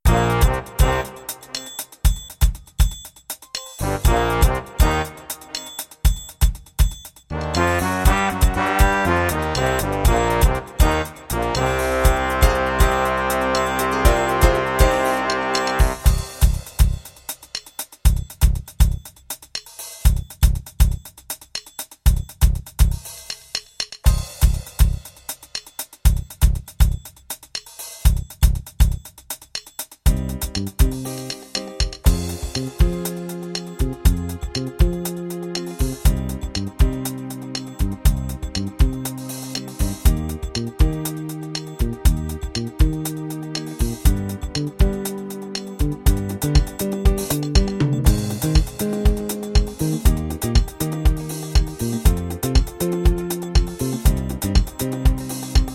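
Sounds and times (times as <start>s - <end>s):
1970s TV theme rhythms: 0.0s - 55.7s.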